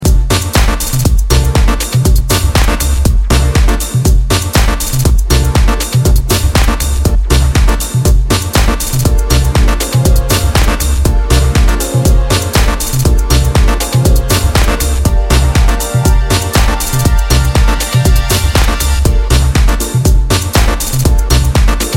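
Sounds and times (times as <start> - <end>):
instrumental music: 0.0 - 21.9.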